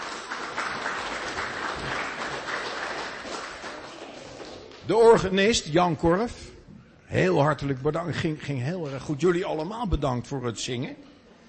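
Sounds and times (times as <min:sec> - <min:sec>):
audience clapping: 0:00.0 - 0:05.4
speech: 0:04.9 - 0:06.5, 0:07.1 - 0:11.1.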